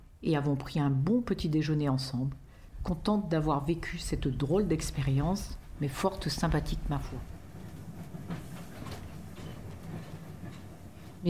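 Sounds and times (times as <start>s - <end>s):
speech: 0.2s - 7.3s
train rolling on rails pulling into a station: 3.6s - 11.2s.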